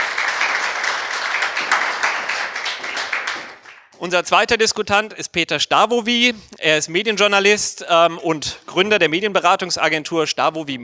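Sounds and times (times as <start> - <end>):
audience applause: 0.0 - 4.0
speech: 4.0 - 10.8.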